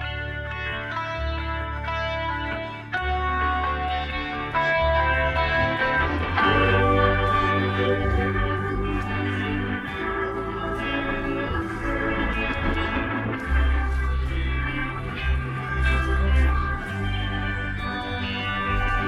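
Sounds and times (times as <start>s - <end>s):
Leslie guitar: 0.0s - 19.0s
keyboards: 0.0s - 19.0s.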